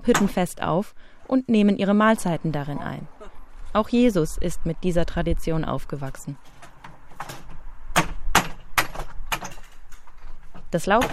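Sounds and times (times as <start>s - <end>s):
speech: 0.0s - 6.5s, 10.7s - 11.1s
hammer knocking nails out of wooden slats: 7.9s - 9.5s.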